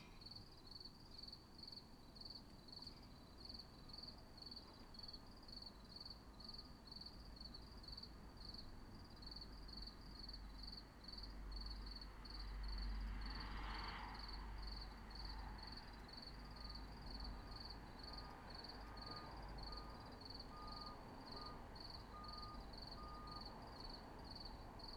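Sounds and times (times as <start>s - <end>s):
cricket chirping in short pulsed bursts: 0.2s - 24.9s.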